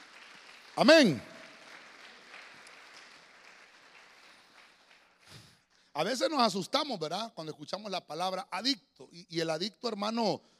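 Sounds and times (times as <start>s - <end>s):
church audience clapping: 0.0s - 6.4s
speech: 0.8s - 1.3s, 6.0s - 10.5s.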